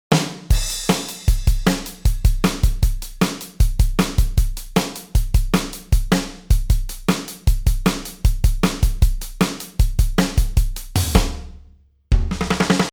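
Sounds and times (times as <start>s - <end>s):
drum: 0.1s - 12.9s.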